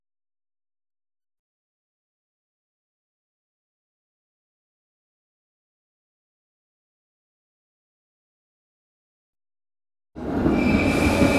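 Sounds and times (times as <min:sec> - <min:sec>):
Eurocity train pulling into a station platform: 0:10.2 - 0:11.3.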